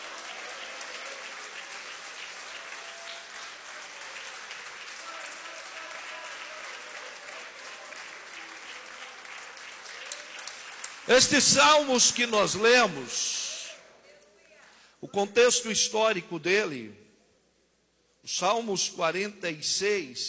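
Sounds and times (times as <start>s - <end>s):
audience applauding: 0.0s - 13.1s
speech: 11.1s - 13.4s, 15.1s - 17.0s, 18.3s - 20.2s.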